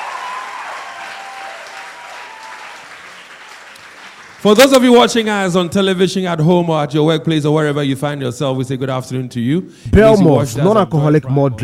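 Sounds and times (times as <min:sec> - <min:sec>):
audience clapping: 0:00.0 - 0:04.9
speech: 0:04.4 - 0:11.6.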